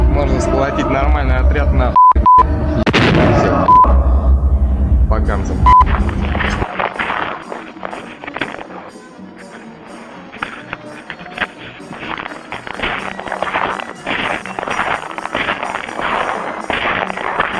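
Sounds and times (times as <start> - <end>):
speech: 0.2 - 3.9, 5.2 - 6.7
footsteps creaking on snow: 5.8 - 17.5.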